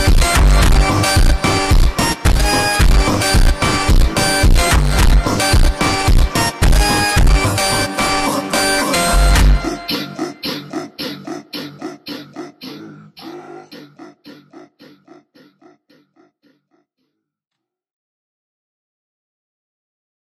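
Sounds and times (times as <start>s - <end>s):
Brazilian phonk music: 0.0s - 15.3s.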